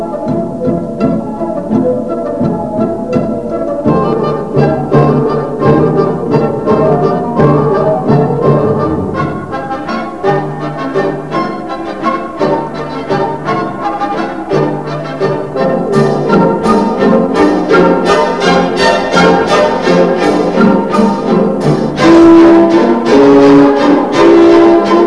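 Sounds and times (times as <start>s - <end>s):
lively classical music: 0.0s - 25.0s.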